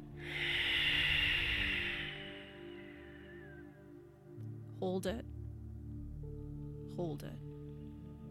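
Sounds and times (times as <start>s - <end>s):
strong exhale during a guided breathing exercise: 0.1s - 3.8s
speech: 4.8s - 5.4s, 7.0s - 7.5s.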